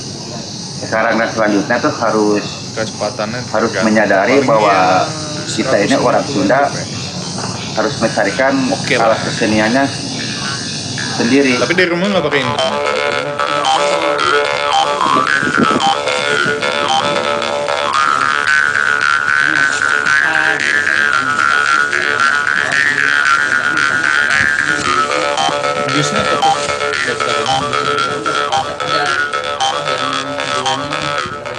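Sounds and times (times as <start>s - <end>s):
speech: 0.8s - 6.9s, 7.8s - 10.0s, 11.2s - 16.5s
karinding bamboo mouth harp playing: 10.9s - 31.5s.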